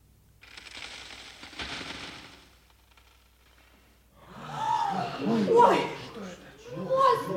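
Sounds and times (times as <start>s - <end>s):
bridge supports cracking and splintering: 0.4s - 4.1s
speech: 5.2s - 6.0s.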